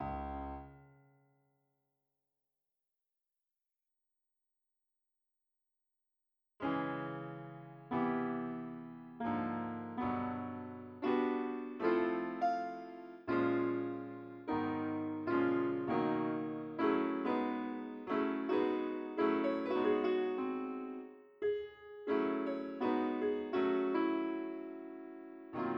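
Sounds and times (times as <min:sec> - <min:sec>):
piano: 0:00.0 - 0:01.2, 0:06.6 - 0:25.7.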